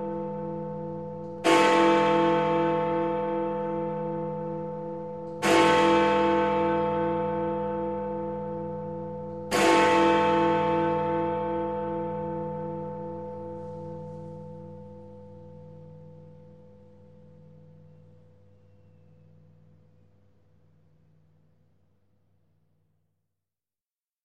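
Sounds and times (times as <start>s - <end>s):
clock tower bell striking at New Year: 0.0s - 17.9s.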